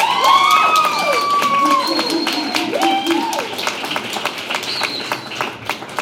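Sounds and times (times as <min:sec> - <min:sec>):
crowd whooping and shouting: 0:00.0 - 0:03.7
audience clapping: 0:00.0 - 0:05.9.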